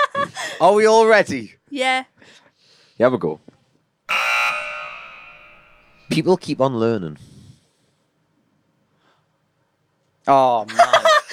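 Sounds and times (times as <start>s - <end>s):
speech: 0.6s - 2.4s, 3.0s - 3.5s, 6.1s - 7.3s, 10.3s - 11.0s
quiz buzzer bell ringing: 4.1s - 6.8s.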